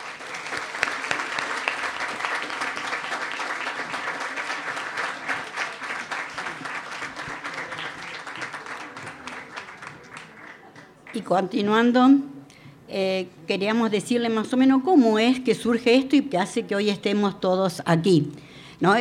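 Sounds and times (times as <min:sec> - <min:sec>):
audience applause: 0:00.0 - 0:11.2
speech: 0:11.2 - 0:12.3, 0:12.9 - 0:18.9.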